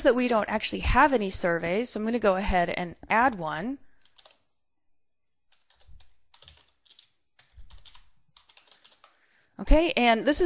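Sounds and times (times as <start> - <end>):
speech: 0.0 - 3.8, 9.6 - 10.4
typing on computer keyboard: 4.0 - 4.5, 5.5 - 9.2.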